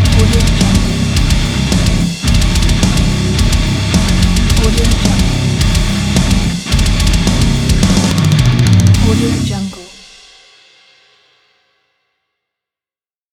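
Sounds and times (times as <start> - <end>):
extreme metal bass logo: 0.0 - 9.6.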